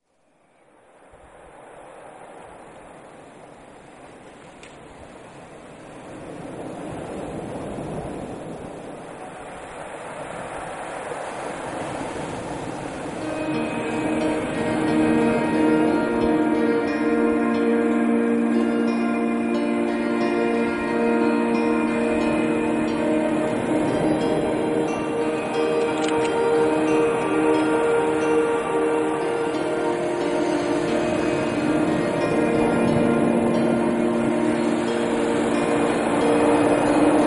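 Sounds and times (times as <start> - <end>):
peaceful waves: 0.0 - 37.2.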